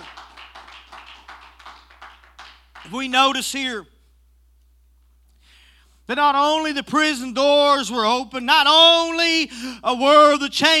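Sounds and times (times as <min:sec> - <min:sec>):
group clapping hands in a steady rhythm: 0:00.0 - 0:03.2
speech: 0:02.8 - 0:03.9, 0:06.1 - 0:10.7.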